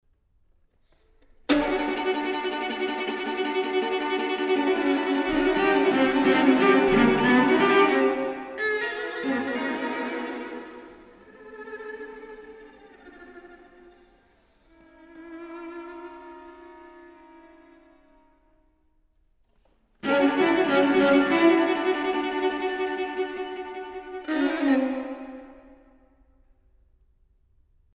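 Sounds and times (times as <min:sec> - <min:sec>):
string quartet playing short pieces: 0:01.5 - 0:14.1, 0:14.8 - 0:18.0, 0:20.0 - 0:25.8.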